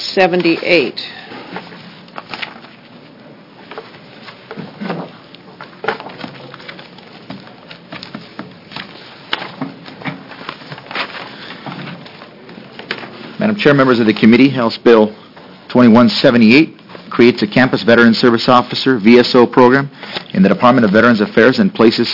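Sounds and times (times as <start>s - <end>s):
speech: 0.2s - 1.2s, 13.6s - 15.2s, 15.8s - 22.1s
papers being shuffled: 0.2s - 13.6s, 18.2s - 22.1s.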